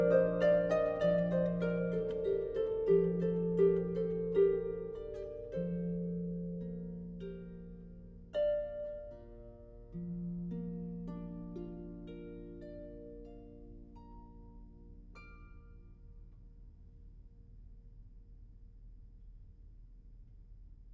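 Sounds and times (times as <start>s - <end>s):
harp playing: 0.0s - 16.0s.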